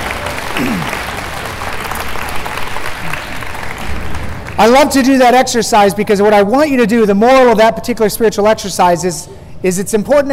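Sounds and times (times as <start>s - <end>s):
audience applause: 0.0s - 4.6s
speech: 4.6s - 10.3s.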